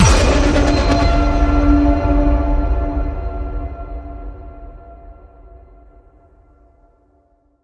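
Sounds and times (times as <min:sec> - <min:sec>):
horror hit: 0:00.0 - 0:06.0.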